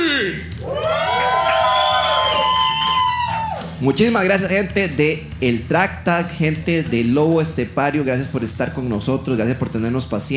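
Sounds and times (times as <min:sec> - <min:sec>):
live audience cheering: 0:00.6 - 0:03.8
speech: 0:03.8 - 0:10.3.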